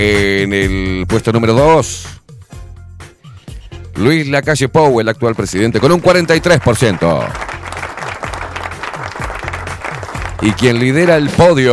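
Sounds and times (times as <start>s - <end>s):
speech: 0.0s - 2.2s, 4.0s - 7.5s, 10.4s - 11.7s
applause: 5.3s - 11.7s.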